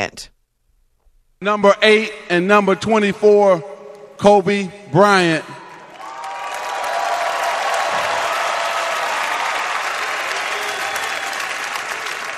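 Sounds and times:
speech: 0.0s - 0.3s, 1.4s - 5.6s
large arena crowd cheering and applauding: 3.5s - 12.3s.

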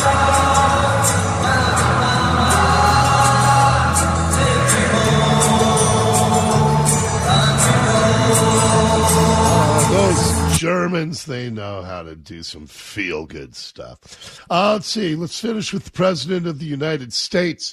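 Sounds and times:
stadium crowd singing together: 0.0s - 10.6s
speech: 10.9s - 17.7s.

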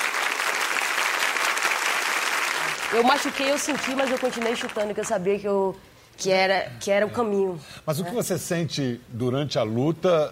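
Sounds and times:
large arena crowd applause: 0.0s - 5.1s
speech: 2.9s - 10.3s.

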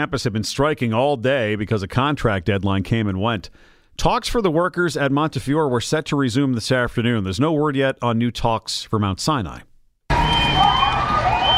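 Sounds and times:
speech: 0.0s - 9.7s
crowd shouting at rally: 10.1s - 11.5s
shrill whistles blowing: 10.1s - 11.5s.

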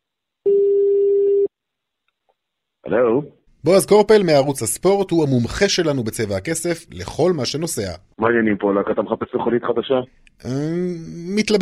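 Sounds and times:
telephone ringing tone on a call being placed: 0.5s - 1.5s
speech: 2.9s - 11.6s.

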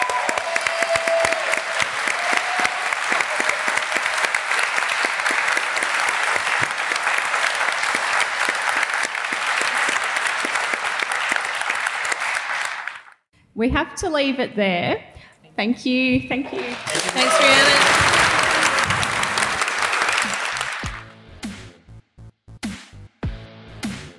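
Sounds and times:
audience applause: 0.0s - 13.2s, 16.5s - 21.1s
speech: 13.6s - 18.0s.

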